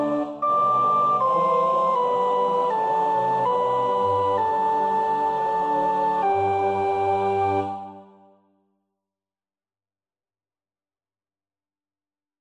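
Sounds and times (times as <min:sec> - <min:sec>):
soprano practising a choir part: 0:00.0 - 0:08.3.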